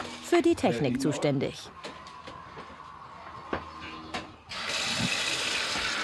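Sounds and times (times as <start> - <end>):
speech: 0.3 - 1.9
hot water running from gas water heater: 4.5 - 6.0.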